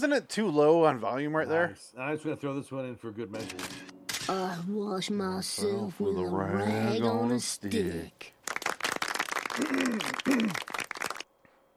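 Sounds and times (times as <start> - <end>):
speech: 0.0 - 8.4, 9.6 - 10.7
crowd applause: 8.4 - 11.3.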